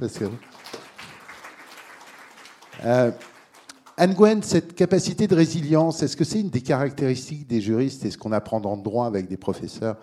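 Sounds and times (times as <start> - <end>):
speech: 0.0 - 0.7, 2.8 - 3.3, 4.0 - 10.0
audience applause: 0.2 - 4.2.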